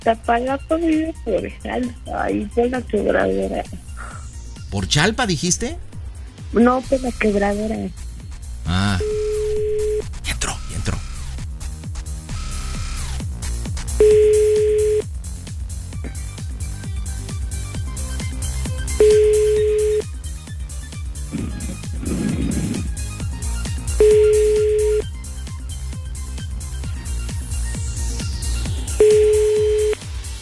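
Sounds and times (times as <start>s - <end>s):
speech: 0.0s - 3.8s, 4.7s - 5.9s, 6.5s - 8.1s
rhythmic music: 0.0s - 30.4s
telephone ringback tone for an unanswered call going to voicemail: 9.0s - 10.0s, 14.0s - 15.0s, 19.0s - 20.0s, 24.0s - 25.0s, 29.0s - 30.0s.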